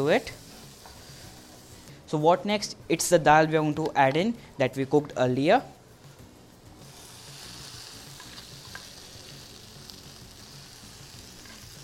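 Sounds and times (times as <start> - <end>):
speech: 0.0 - 0.4, 2.1 - 5.8
spices frying in a pan: 0.0 - 2.0, 6.8 - 11.8.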